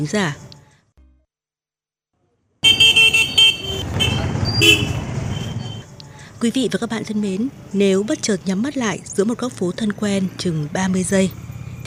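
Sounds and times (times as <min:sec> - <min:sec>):
speech: 0:00.0 - 0:00.4, 0:06.4 - 0:11.8
car horn honking in street traffic: 0:02.6 - 0:05.8
continuous rumble of passing vehicles: 0:02.6 - 0:11.8.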